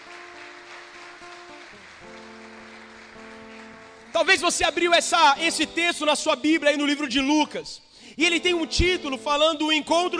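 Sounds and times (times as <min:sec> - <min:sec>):
audience applauding: 0:00.0 - 0:05.1
speech: 0:04.2 - 0:10.1.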